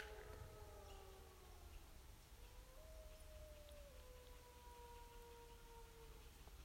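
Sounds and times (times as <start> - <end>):
wolf chorus of drawn-out overlapping howls: 0.0 - 6.5.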